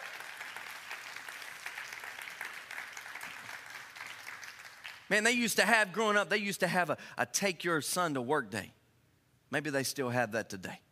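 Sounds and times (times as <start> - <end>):
crowd clapping: 0.0 - 5.1
speech: 5.1 - 8.8, 9.5 - 10.8.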